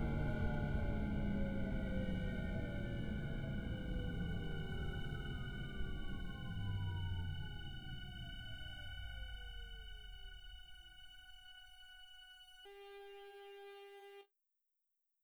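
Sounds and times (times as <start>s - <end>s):
motor noise: 0.0s - 10.4s.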